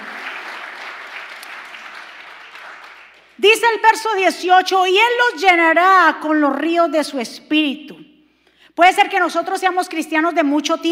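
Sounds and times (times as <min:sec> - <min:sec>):
audience applauding loudly: 0:00.0 - 0:03.4
speech: 0:03.4 - 0:08.1, 0:08.8 - 0:10.9.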